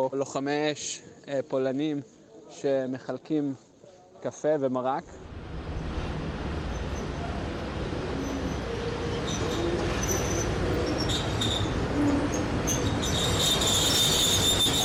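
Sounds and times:
speech: 0.0 - 5.3
passenger train arriving at station: 5.4 - 14.8.

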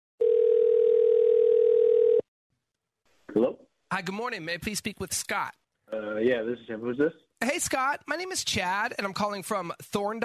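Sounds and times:
telephone dial tone of outgoing call: 0.2 - 2.3
speech: 3.4 - 10.2.

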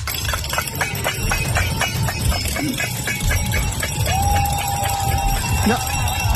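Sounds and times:
climate alarm clanging: 0.0 - 6.3
constant rumbling: 0.0 - 6.3.

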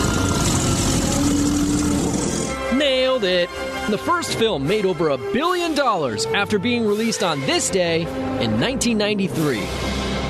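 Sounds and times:
homemade T-Rex roar from mixed animal sounds: 0.0 - 2.7
speech: 2.8 - 9.9.

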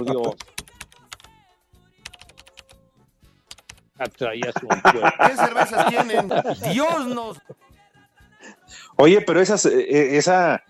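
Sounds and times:
speech: 0.0 - 0.6, 4.0 - 7.6, 9.0 - 10.6
typing on a computer keyboard: 0.0 - 1.4, 2.0 - 2.8, 3.5 - 4.2
laughter: 4.4 - 7.6.

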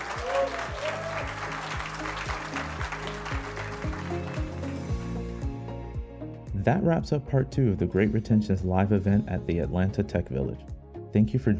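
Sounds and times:
round of applause: 0.0 - 5.0
speech: 6.6 - 11.5.

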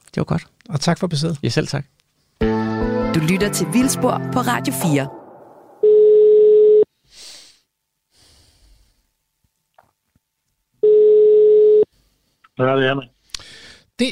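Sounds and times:
speech: 0.2 - 2.0, 3.2 - 5.2, 12.6 - 13.2
telephone ringback tone of an outgoing call: 5.8 - 6.9, 10.8 - 11.9
faint breathing: 6.9 - 9.2, 11.9 - 12.5, 13.2 - 14.0.

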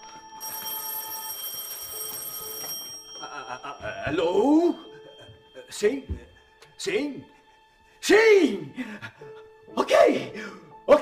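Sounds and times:
telephone bell ringing: 0.0 - 5.6
speech: 3.6 - 4.8, 5.7 - 7.4, 8.0 - 11.0.

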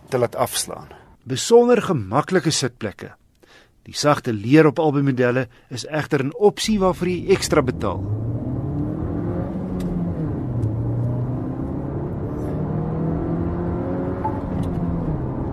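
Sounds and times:
speech: 0.1 - 8.2
road rumble: 6.7 - 15.5
1.2-litre petrol turbo car engine drone: 6.8 - 15.5.

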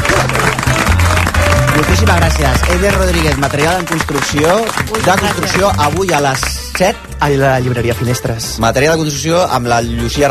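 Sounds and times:
audience applause: 0.0 - 6.8
speech: 2.1 - 10.2.

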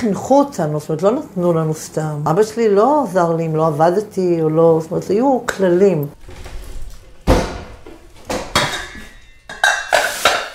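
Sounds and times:
speech: 0.0 - 6.5
pots, dishes and cutlery clattering as lunch is cooked at home: 6.2 - 10.5.

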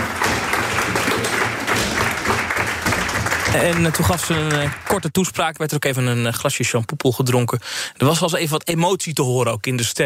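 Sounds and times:
applause: 0.0 - 5.2
speech: 3.6 - 10.0.

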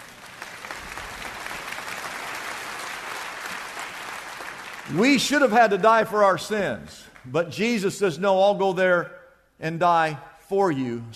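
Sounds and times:
audience clapping: 0.0 - 7.4
speech: 4.9 - 11.1.

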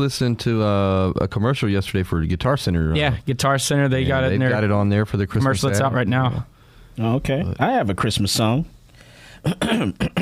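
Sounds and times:
speech: 0.0 - 8.8, 9.4 - 10.2
throat clearing: 9.4 - 10.2.

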